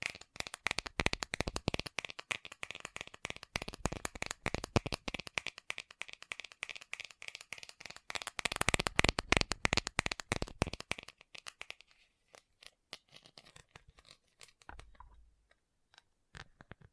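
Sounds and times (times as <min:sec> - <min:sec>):
fast tapping: 0:00.0 - 0:11.8.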